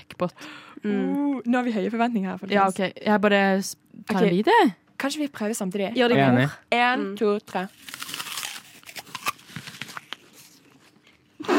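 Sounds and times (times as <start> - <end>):
speech: 0.1 - 8.1
biting and chewing pink-striped Epleslang candy: 7.7 - 10.3.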